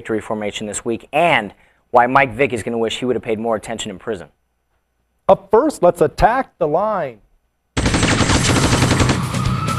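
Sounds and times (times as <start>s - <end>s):
speech: 0.0s - 4.4s, 5.3s - 7.2s
machine gun fire sound effect: 7.8s - 9.6s.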